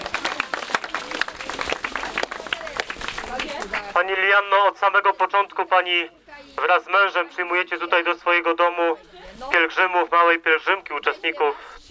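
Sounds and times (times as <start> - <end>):
audience applause: 0.0 - 4.0
speech: 3.6 - 11.9.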